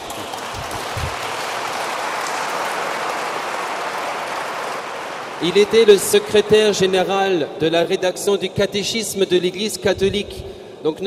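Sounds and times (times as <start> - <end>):
crowd clapping: 0.0 - 7.4
speech: 5.4 - 11.0.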